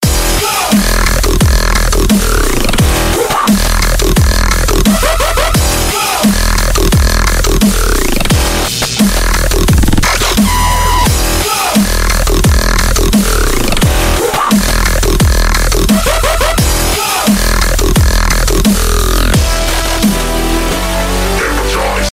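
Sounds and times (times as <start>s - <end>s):
electronic dance music: 0.0s - 22.1s.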